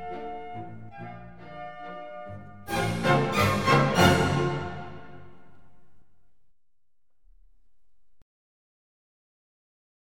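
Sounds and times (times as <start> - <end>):
orchestra playing allegretto vivace in F: 0.0 - 6.0.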